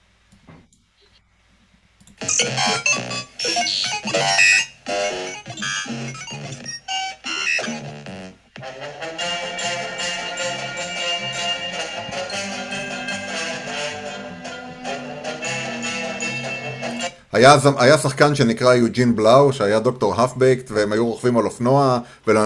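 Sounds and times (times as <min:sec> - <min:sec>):
old TV show instrumental theme tune: 0:02.2 - 0:17.1
speech: 0:02.3 - 0:04.7, 0:17.4 - 0:22.4.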